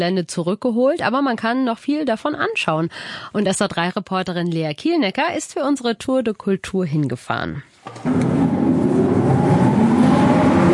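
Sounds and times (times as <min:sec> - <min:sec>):
speech: 0:00.0 - 0:08.6
old bunker ventilation system motors running: 0:07.9 - 0:10.7.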